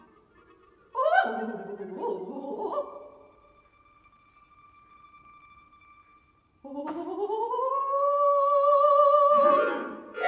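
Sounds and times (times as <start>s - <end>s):
soprano voice singing hohohoho: 0.9s - 3.2s, 6.6s - 10.1s.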